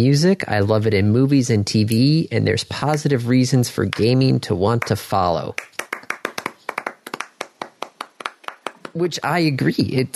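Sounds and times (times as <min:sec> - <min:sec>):
speech: 0:00.0 - 0:05.7, 0:09.0 - 0:10.1
hands clapping in applause: 0:03.8 - 0:09.2.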